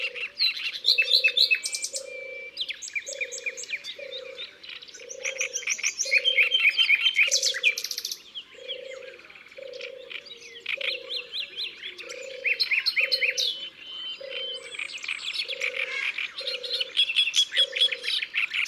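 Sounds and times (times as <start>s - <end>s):
common nightingale singing: 0.0s - 18.6s.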